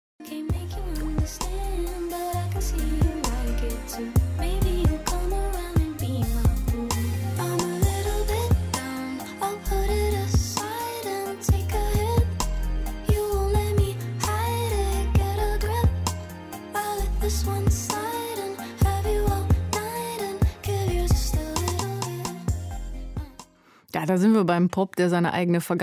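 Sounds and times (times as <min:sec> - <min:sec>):
1990s-style R&B track with punchy drums, deep bass and smooth melodic lead: 0:00.2 - 0:23.7
speech: 0:01.2 - 0:01.6, 0:02.6 - 0:04.6, 0:24.1 - 0:25.8.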